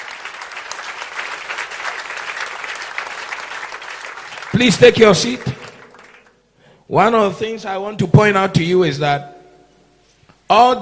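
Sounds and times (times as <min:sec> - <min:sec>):
audience clapping in praise: 0:00.0 - 0:06.4
speech: 0:04.6 - 0:05.6, 0:06.9 - 0:09.3, 0:10.5 - 0:10.8.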